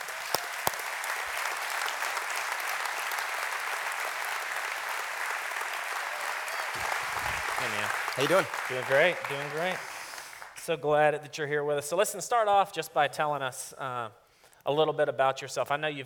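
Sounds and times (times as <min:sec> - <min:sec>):
large crowd applause: 0:00.0 - 0:10.6
speech: 0:07.7 - 0:09.9, 0:10.7 - 0:16.0.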